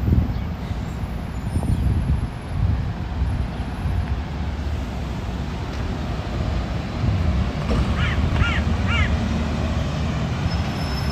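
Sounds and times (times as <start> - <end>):
traffic rumble on a city street in Ramat Aviv, Tel Aviv: 0.0 - 11.1
crow cawing: 8.0 - 9.2.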